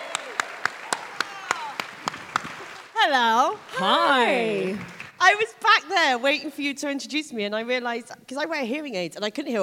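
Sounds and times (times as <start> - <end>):
audience clapping as a comedian is welcomed onto a stage: 0.0 - 5.5
speech: 3.0 - 9.6.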